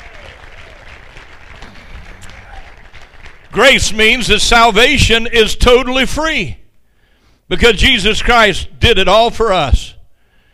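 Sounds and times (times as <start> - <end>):
audience hand clapping: 0.0 - 3.9
speech: 3.5 - 6.6, 7.5 - 9.9.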